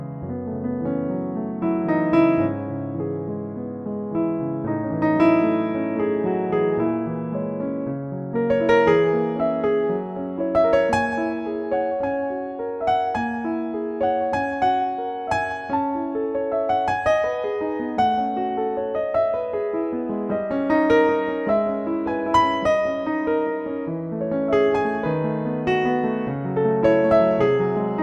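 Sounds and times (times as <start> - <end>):
soft bright Bluethner piano piece: 0.0 - 28.0.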